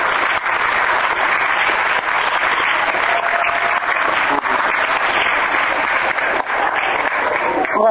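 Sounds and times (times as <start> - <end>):
applause: 0.0 - 7.8.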